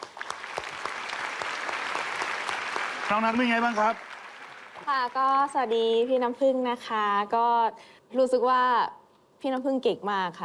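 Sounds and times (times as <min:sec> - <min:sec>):
crowd clapping: 0:00.0 - 0:05.8
speech: 0:03.1 - 0:04.1, 0:04.8 - 0:10.4.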